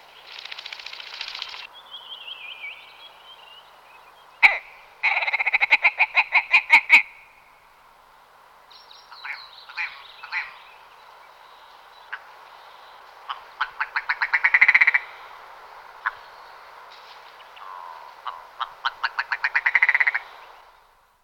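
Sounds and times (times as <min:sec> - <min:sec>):
willow ptarmigan calling: 0:04.4 - 0:07.6, 0:09.1 - 0:10.8, 0:12.0 - 0:15.4, 0:16.0 - 0:16.4, 0:17.4 - 0:20.6.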